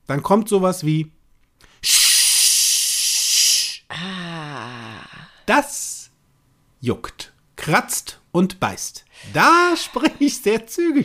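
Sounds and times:
speech: 0:00.1 - 0:01.2, 0:01.8 - 0:02.0, 0:05.5 - 0:05.8, 0:06.8 - 0:11.0
person shushing: 0:01.8 - 0:05.4.

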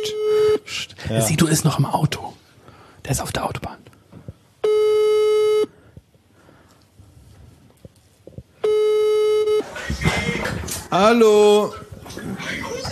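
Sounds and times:
speech: 0:01.1 - 0:02.3, 0:03.1 - 0:03.8, 0:10.9 - 0:11.8
telephone ringing on an outgoing call: 0:04.6 - 0:05.7, 0:08.6 - 0:10.4.

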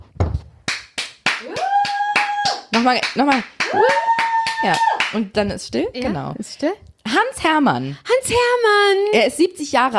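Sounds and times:
applause: 0:00.7 - 0:05.2
speech: 0:02.8 - 0:09.9.

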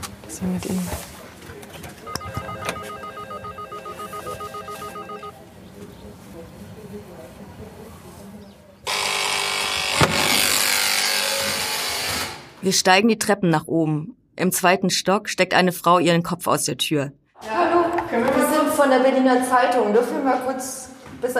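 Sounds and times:
speech: 0:00.4 - 0:01.1, 0:12.7 - 0:17.5, 0:18.8 - 0:21.3
electronic doorbell ringing: 0:02.1 - 0:05.3
harsh steady buzz: 0:08.9 - 0:12.6.

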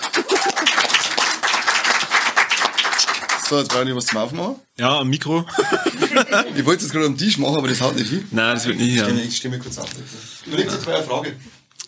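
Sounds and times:
laughter: 0:00.0 - 0:00.9, 0:05.5 - 0:06.9
audience applause: 0:00.0 - 0:03.9
speech: 0:03.5 - 0:11.6.

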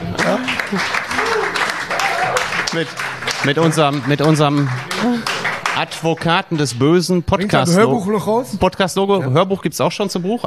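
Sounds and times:
small group applause: 0:00.0 - 0:06.8
people talking and calling out: 0:00.0 - 0:10.4
speech: 0:00.2 - 0:01.1, 0:02.7 - 0:10.4.

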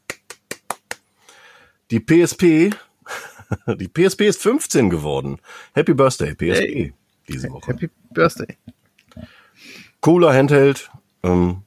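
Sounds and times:
small round of applause: 0:00.0 - 0:01.0
speech: 0:01.9 - 0:02.9, 0:03.5 - 0:11.6
laughter: 0:03.1 - 0:03.9.

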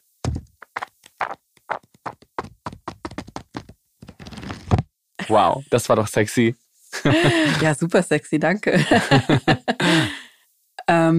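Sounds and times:
book pages flipping: 0:00.3 - 0:04.8
speech: 0:05.3 - 0:10.0
laughter: 0:07.0 - 0:07.8, 0:08.8 - 0:10.2.

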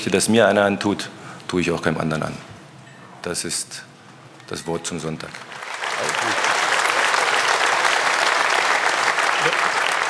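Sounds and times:
speech: 0:00.0 - 0:02.5, 0:03.2 - 0:03.9, 0:04.5 - 0:05.6
audience applause: 0:05.3 - 0:10.0.

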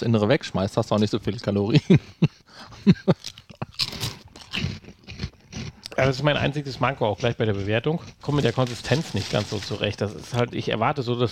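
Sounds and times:
speech: 0:00.0 - 0:03.4, 0:06.0 - 0:11.2
laughter: 0:01.7 - 0:03.2
snack chips crunching: 0:03.2 - 0:06.0, 0:08.0 - 0:10.5.

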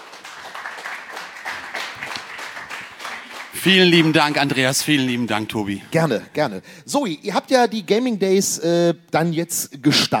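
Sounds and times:
audience applause: 0:00.0 - 0:05.7
speech: 0:03.6 - 0:10.1.

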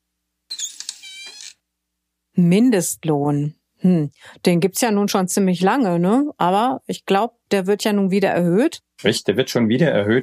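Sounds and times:
small door creaking open: 0:00.5 - 0:01.6
speech: 0:02.4 - 0:10.2.

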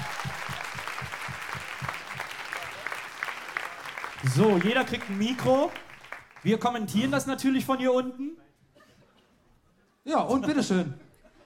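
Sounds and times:
audience applause: 0:00.0 - 0:06.8
speech: 0:04.2 - 0:08.4, 0:10.0 - 0:11.0.

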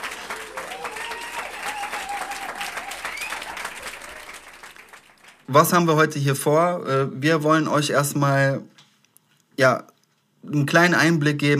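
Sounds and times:
cheers: 0:00.0 - 0:05.4
crowd applauding: 0:00.0 - 0:05.8
speech: 0:05.5 - 0:08.7, 0:09.6 - 0:11.5.

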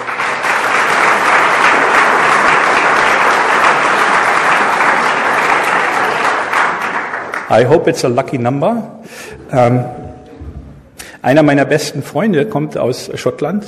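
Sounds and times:
crowd clapping: 0:00.0 - 0:08.2
speech: 0:07.5 - 0:10.0, 0:11.2 - 0:13.6.

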